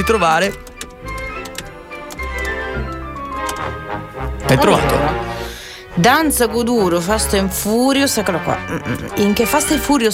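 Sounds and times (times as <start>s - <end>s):
speech: 0.0s - 0.7s, 4.5s - 5.3s, 6.0s - 10.1s
computer keyboard typing: 0.0s - 3.8s
steady tonal background: 0.0s - 10.1s.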